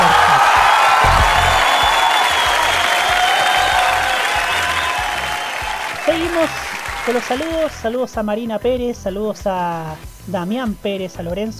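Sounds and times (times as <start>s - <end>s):
applause: 0.0s - 7.8s
speech: 6.4s - 11.5s.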